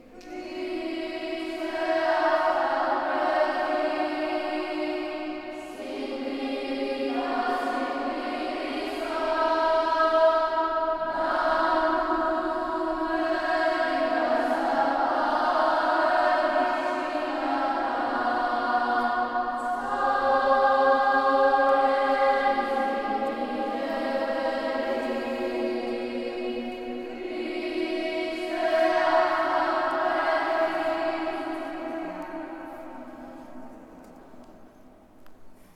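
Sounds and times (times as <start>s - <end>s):
children's choir singing: 0.0s - 35.7s.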